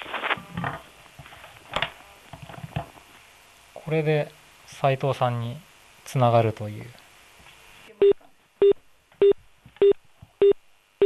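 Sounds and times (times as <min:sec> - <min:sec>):
faint hum: 0:00.0 - 0:11.0
speech: 0:03.9 - 0:07.0
electronic telephone beeps: 0:08.0 - 0:11.0.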